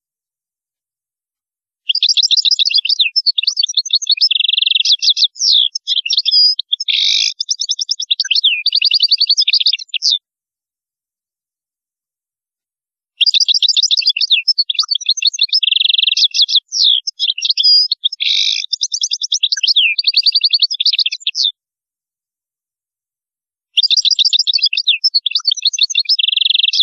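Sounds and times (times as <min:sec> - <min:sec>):
European goldfinch song: 0:01.9 - 0:10.2, 0:13.2 - 0:21.5, 0:23.8 - 0:26.8.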